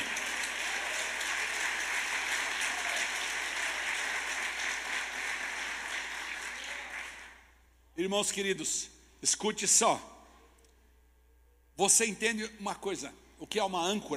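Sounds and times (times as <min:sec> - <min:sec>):
audience applauding: 0:00.0 - 0:07.4
speech: 0:08.0 - 0:10.2, 0:11.8 - 0:14.1.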